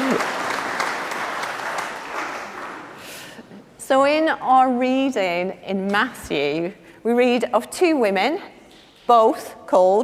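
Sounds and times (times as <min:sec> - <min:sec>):
audience clapping: 0:00.0 - 0:03.2
speech: 0:03.9 - 0:10.0.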